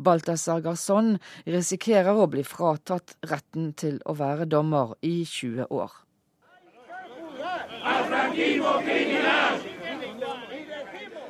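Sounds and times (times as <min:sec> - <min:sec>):
speech: 0:00.0 - 0:06.0, 0:07.6 - 0:09.8
crowd of supporters outside a courthouse in Madrid: 0:06.5 - 0:11.2.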